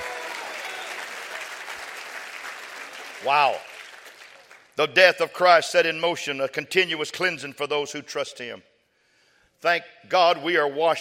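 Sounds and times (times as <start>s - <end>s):
audience clapping hands: 0.0s - 4.8s
speech: 3.2s - 3.7s, 4.8s - 8.7s, 9.6s - 11.0s.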